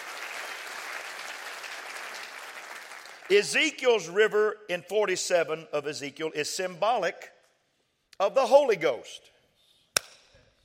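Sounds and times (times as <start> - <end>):
church congregation applause during a worship service: 0.0 - 4.0
speech: 3.3 - 7.4, 8.2 - 9.3.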